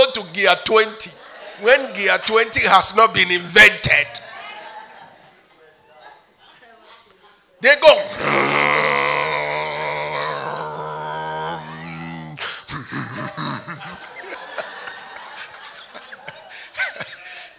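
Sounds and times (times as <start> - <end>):
speech: 0.2 - 4.2, 7.6 - 8.4
voice imitating snoring: 8.1 - 14.0
laughter: 8.1 - 17.2.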